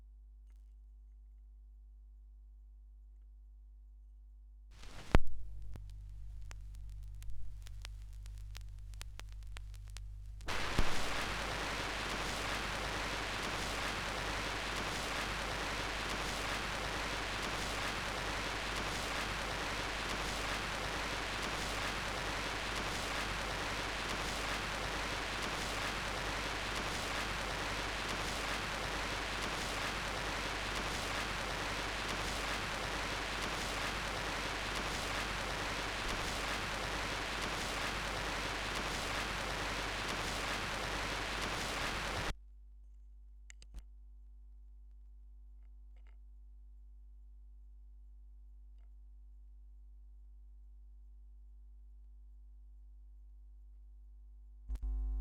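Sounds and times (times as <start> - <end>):
vinyl record noise: 4.8 - 42.3.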